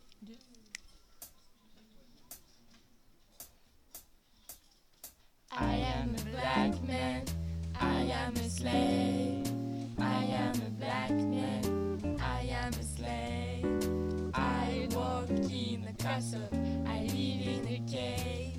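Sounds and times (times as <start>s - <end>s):
blues music: 5.6s - 18.5s.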